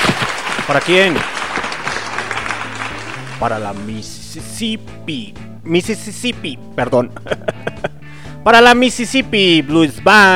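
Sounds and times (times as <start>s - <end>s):
audience applause: 0.0s - 3.9s
speech: 0.7s - 1.4s, 3.4s - 7.8s, 8.4s - 10.3s
laughter: 7.1s - 8.0s.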